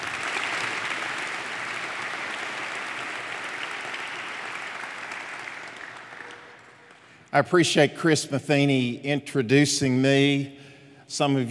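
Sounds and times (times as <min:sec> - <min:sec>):
audience round of applause: 0:00.0 - 0:07.2
speech: 0:07.3 - 0:11.4.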